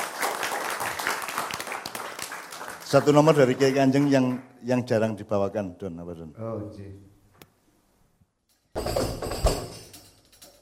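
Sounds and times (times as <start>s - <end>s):
applause for a group of dancers: 0.0s - 4.6s
speech: 2.9s - 7.1s.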